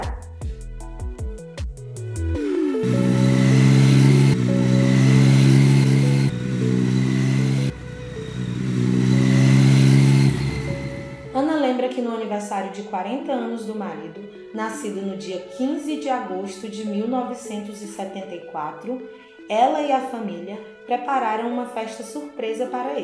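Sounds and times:
motorcycle riding through city streets: 2.4s - 11.4s
speech: 12.7s - 23.0s.

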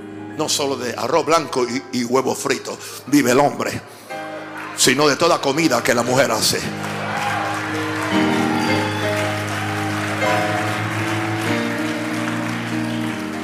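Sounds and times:
speech: 0.4s - 4.0s, 4.8s - 7.0s
crowd clapping: 4.2s - 13.4s.

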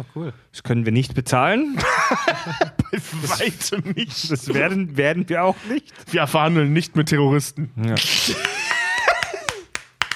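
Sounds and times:
speech: 0.0s - 8.6s
laughter: 1.7s - 4.8s, 8.0s - 9.8s
scattered claps: 8.4s - 10.1s.

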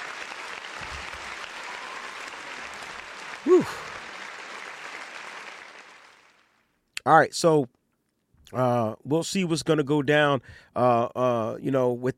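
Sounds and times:
crowd clapping: 0.0s - 6.7s
speech: 3.4s - 3.9s, 7.1s - 7.8s, 8.5s - 12.1s
person exclaiming: 3.5s - 3.8s.

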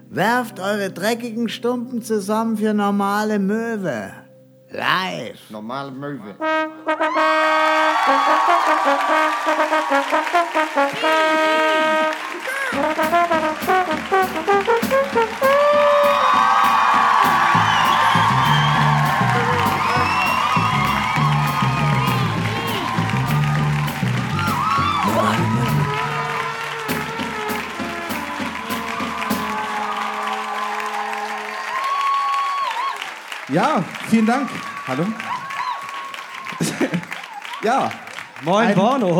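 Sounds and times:
speech: 0.1s - 16.0s, 33.5s - 35.3s, 37.6s - 39.1s
live crowd clapping and cheering: 7.0s - 39.1s
whoops and shouts: 7.8s - 10.1s, 15.5s - 26.5s, 28.7s - 33.1s, 34.4s - 37.7s
laughter: 10.9s - 13.0s, 25.0s - 26.3s, 36.4s - 39.1s.

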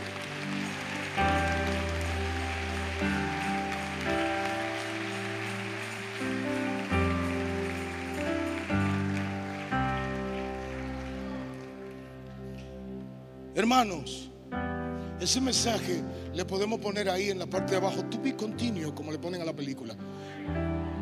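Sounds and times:
audience applause: 0.0s - 12.9s
speech: 13.6s - 14.3s, 15.2s - 20.9s.

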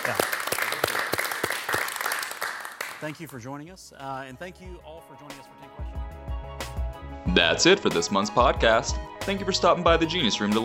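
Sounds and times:
audience applause: 0.0s - 3.1s
speech: 0.1s - 0.3s, 3.0s - 6.0s, 7.2s - 10.6s.

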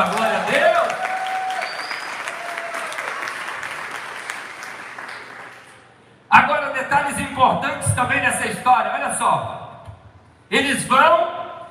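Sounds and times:
audience applause: 0.0s - 5.8s
faint whistles and shouts: 1.4s - 2.4s
speech: 7.4s - 9.6s, 10.5s - 11.3s.

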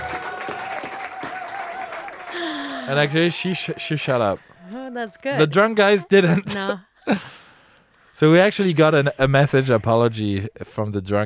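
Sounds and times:
audience applause: 0.0s - 4.9s
speech: 2.9s - 7.4s, 8.2s - 11.2s.

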